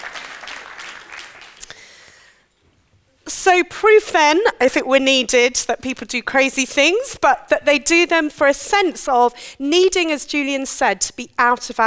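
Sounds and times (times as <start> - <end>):
audience applause: 0.0 - 1.7
speech: 3.4 - 11.8.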